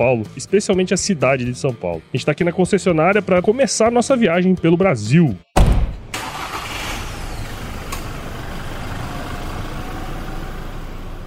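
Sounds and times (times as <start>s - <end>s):
speech: 0.0s - 5.6s
diesel vehicle driving through city streets: 6.0s - 11.2s.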